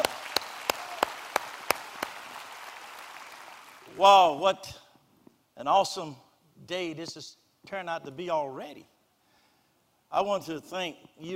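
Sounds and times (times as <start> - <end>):
audience clapping: 0.0 - 4.0
speech: 4.0 - 4.8, 5.6 - 8.9, 10.1 - 11.3.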